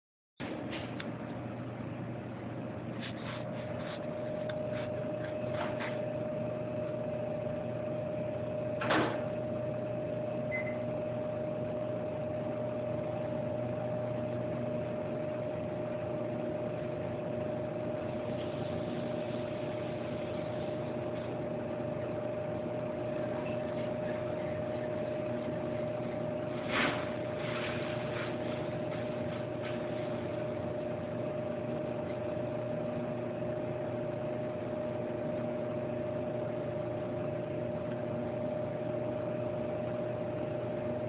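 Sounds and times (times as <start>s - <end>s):
microwave heating a snack: 0.4s - 41.0s.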